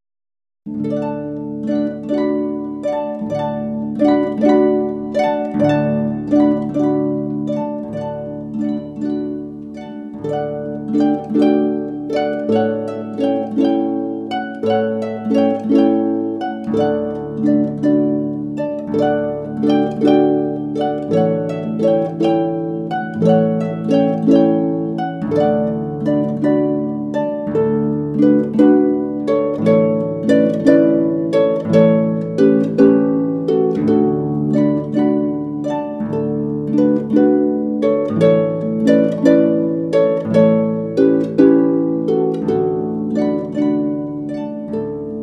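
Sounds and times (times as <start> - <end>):
barcarolle piece: 0.7 - 45.2.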